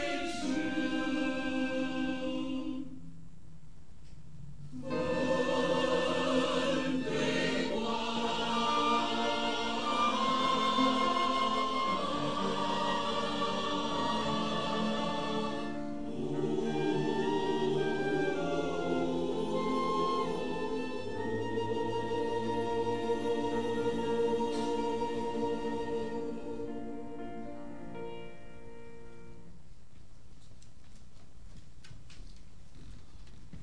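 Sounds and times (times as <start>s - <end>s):
choir singing: 0.0s - 3.0s, 4.7s - 27.8s.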